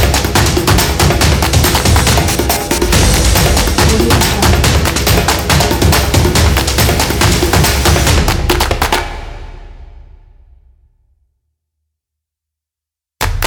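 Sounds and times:
epic drums logo: 0.0s - 10.6s.

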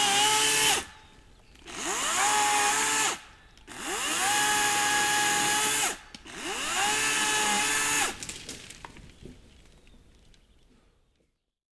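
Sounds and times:
electric saw cutting trees: 0.0s - 1.0s, 1.6s - 8.2s.

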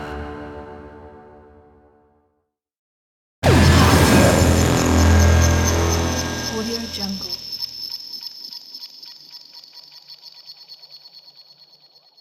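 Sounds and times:
trailer impact: 3.4s - 7.4s.

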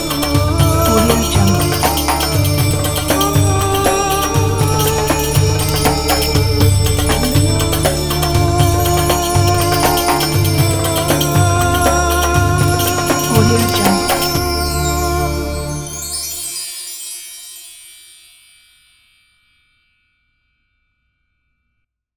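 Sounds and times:
belly dance music: 0.0s - 16.6s.

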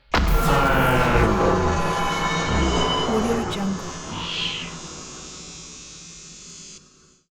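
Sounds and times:
morphed vocal: 0.2s - 5.1s.

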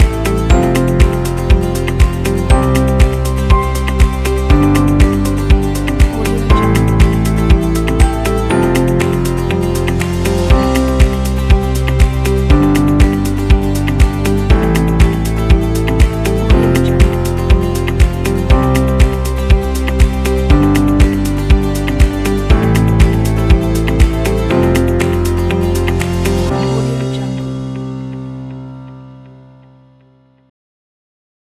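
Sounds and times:
upbeat minimal corporate music: 0.0s - 29.6s.

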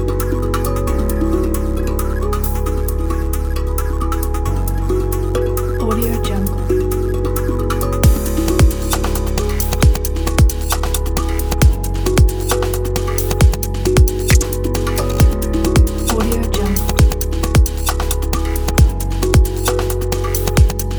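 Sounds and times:
ambient background music: 0.0s - 20.9s.

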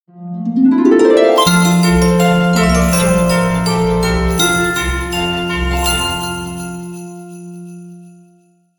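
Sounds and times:
Christmas ident jingle: 1.0s - 8.3s.

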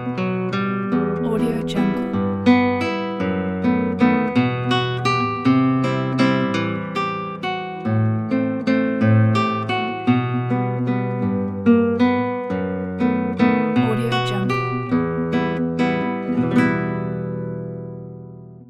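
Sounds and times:
classical guitar playing a Russian romance: 0.0s - 18.6s.

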